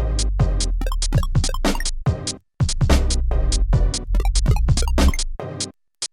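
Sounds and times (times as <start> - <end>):
light dubstep music: 0.0 - 2.0, 3.0 - 5.4.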